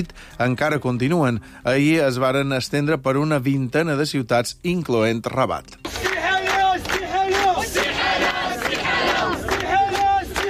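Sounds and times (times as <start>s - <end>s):
speech: 0.0s - 5.9s
large protest crowd chanting slogans in unison: 5.9s - 10.4s.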